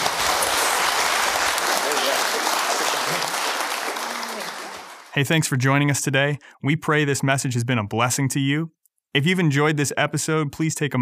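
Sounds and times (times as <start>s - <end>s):
audience round of applause: 0.0s - 5.2s
speech: 5.2s - 11.0s.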